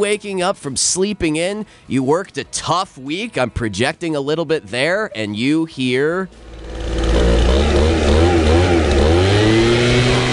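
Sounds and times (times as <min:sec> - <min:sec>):
speech: 0:00.0 - 0:06.9
leaf blower engine running early on a Saturday morning: 0:06.3 - 0:10.3.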